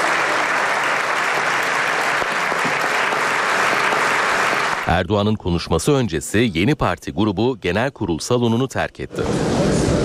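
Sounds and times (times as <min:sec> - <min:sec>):
parliament members giving standing applause: 0:00.0 - 0:04.9
speech: 0:05.0 - 0:09.7.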